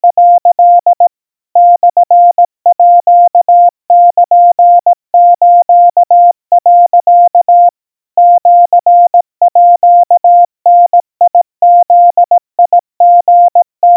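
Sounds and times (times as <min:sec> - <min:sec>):
crispy Morse code tones at 700 Hz: 0:00.0 - 0:01.0, 0:01.6 - 0:13.9.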